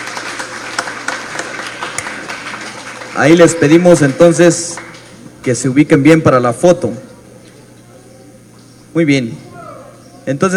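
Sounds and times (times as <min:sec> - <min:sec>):
audience applause: 0:00.0 - 0:05.6
speech: 0:03.2 - 0:04.8, 0:05.4 - 0:07.1, 0:09.0 - 0:09.5, 0:10.3 - 0:10.5.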